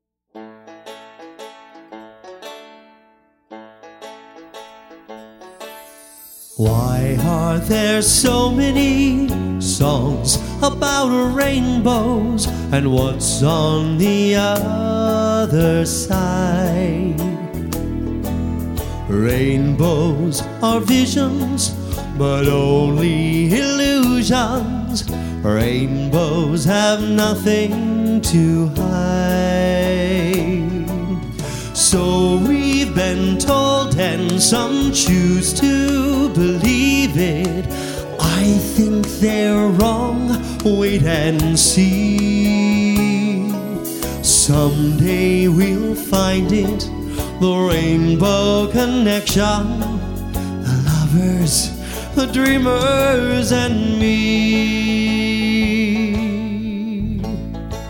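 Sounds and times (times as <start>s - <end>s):
person singing: 5.8s - 57.8s.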